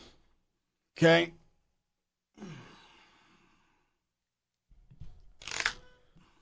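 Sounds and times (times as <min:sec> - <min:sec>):
speech: 0:01.0 - 0:01.4
deck of playing cards being cut during a card trick: 0:05.4 - 0:05.8.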